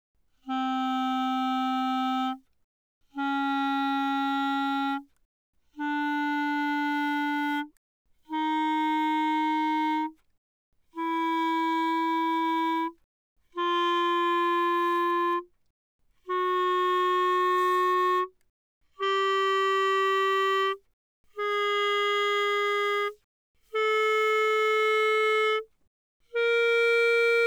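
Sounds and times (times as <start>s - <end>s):
E-flat clarinet playing fortissimo from C4 to B4: 0.4s - 2.4s, 3.2s - 5.1s, 5.8s - 7.7s, 8.3s - 10.2s, 11.0s - 12.9s, 13.6s - 15.4s, 16.3s - 18.3s, 19.0s - 20.8s, 21.4s - 23.1s, 23.7s - 25.7s, 26.3s - 27.4s.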